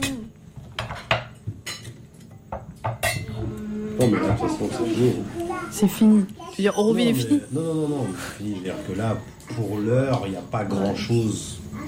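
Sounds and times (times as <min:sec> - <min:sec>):
plates and cutlery clinking as a table is set for couscous: 0:00.0 - 0:05.1, 0:10.0 - 0:11.4
speech: 0:04.0 - 0:11.6.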